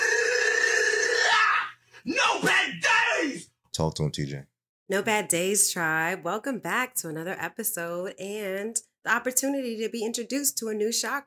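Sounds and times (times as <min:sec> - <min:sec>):
person howling: 0:00.0 - 0:03.4
speech: 0:02.0 - 0:11.2.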